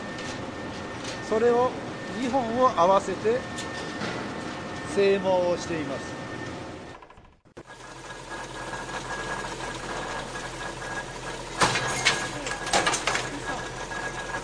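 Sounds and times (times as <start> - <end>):
speech: 1.3 - 4.1, 5.0 - 6.2
wire straightening machine straightening coiled wire in a workshop: 5.5 - 14.4.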